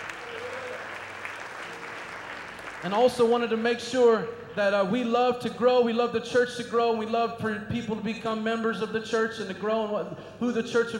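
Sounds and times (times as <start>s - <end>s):
audience applause: 0.0s - 3.9s
speech: 2.8s - 10.9s.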